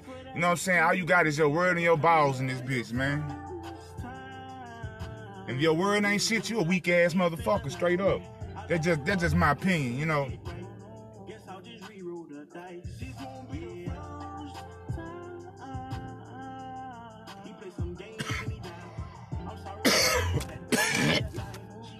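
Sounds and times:
music with a bass line: 0.0s - 21.9s
speech: 0.4s - 3.4s, 5.5s - 10.6s
person coughing and choking: 18.1s - 18.7s, 19.7s - 21.5s.

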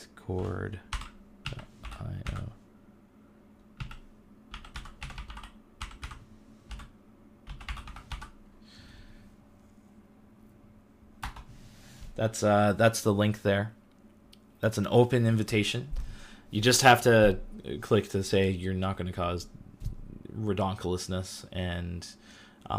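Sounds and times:
faint steady hum: 0.0s - 22.7s
speech: 0.3s - 0.9s, 12.2s - 13.8s, 14.6s - 19.6s, 20.4s - 22.7s
typing on a computer keyboard to post a Discord link: 0.9s - 2.5s, 3.8s - 6.9s, 7.5s - 8.4s.

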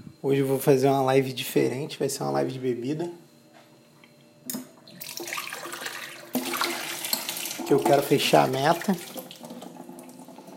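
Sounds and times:
speech: 0.2s - 3.2s, 7.7s - 9.2s
running tap water washing something: 4.5s - 10.5s.

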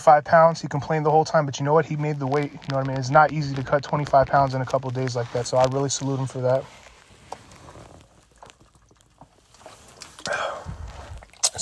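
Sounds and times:
speech: 0.0s - 6.8s
rustle: 4.0s - 11.4s
person sipping water from a bottle: 6.7s - 11.6s
person swallowing: 10.0s - 11.6s.

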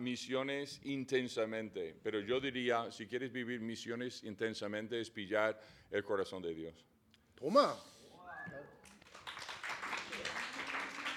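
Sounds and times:
speech: 0.0s - 8.8s
applause: 8.8s - 11.1s.

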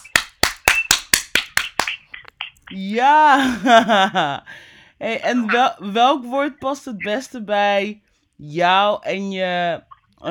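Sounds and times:
hands clapping: 0.0s - 2.7s
speech: 2.7s - 10.2s
laughter: 3.4s - 4.4s.

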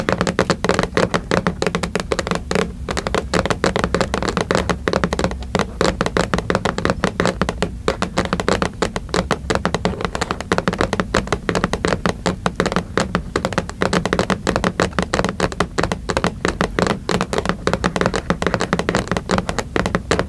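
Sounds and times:
aggressive tapping on a hard surface: 0.0s - 20.2s.

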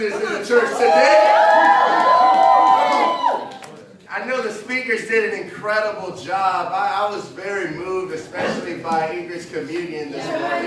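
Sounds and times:
speech: 0.0s - 1.3s, 4.7s - 10.6s
audience clapping and cheering: 0.5s - 4.0s.

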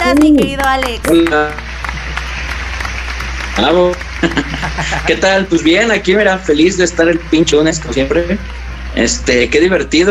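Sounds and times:
applause: 0.0s - 6.7s
laughter: 0.0s - 10.0s
speech: 0.1s - 1.6s, 3.6s - 10.0s.

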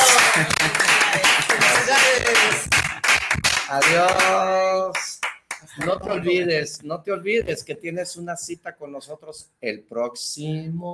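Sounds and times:
crowd applause: 0.0s - 4.4s
speech: 0.4s - 0.8s, 3.7s - 5.1s, 5.8s - 10.9s.

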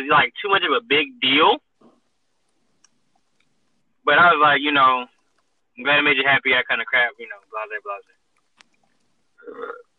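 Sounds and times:
speech: 0.0s - 1.6s, 4.0s - 5.1s, 5.8s - 8.2s, 9.5s - 9.8s
burp: 9.4s - 9.9s.

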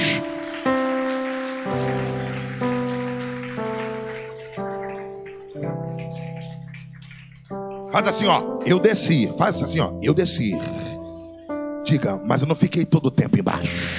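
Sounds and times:
crowd clapping: 0.0s - 9.2s
sustained keyboard chords: 0.0s - 13.7s
speech: 8.0s - 10.9s, 11.9s - 13.9s.

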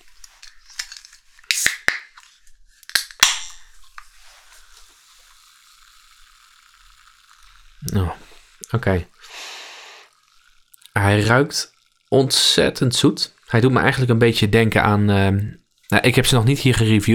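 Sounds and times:
energy drink can opening with fizzing hiss: 0.0s - 13.6s
energy drink can tab clicking: 0.2s - 4.1s
speech: 7.8s - 9.1s, 11.1s - 17.1s.

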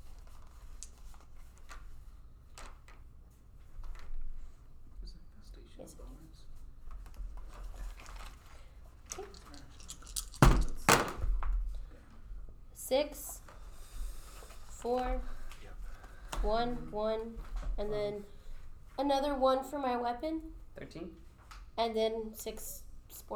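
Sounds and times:
dice rolling: 0.6s - 1.2s, 9.1s - 11.3s
speech: 12.9s - 13.4s, 14.8s - 15.4s, 16.4s - 18.3s, 19.0s - 23.3s.

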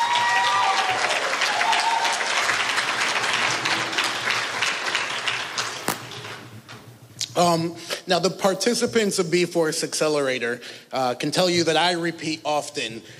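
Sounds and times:
audience applause at a City of Norfolk business accelerator event honoring a councilwoman: 0.0s - 6.5s
speech: 7.4s - 13.1s.

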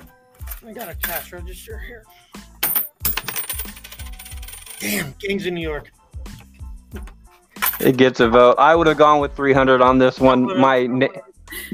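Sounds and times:
quarter dropping onto a hard surface: 0.4s - 1.3s, 2.6s - 5.0s, 7.6s - 8.0s
speech: 0.6s - 2.4s, 4.8s - 6.0s, 7.8s - 11.3s.

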